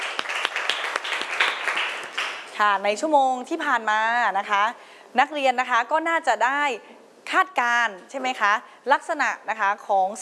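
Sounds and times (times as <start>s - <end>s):
group of students clapping together: 0.0s - 2.6s
speech: 2.6s - 10.2s.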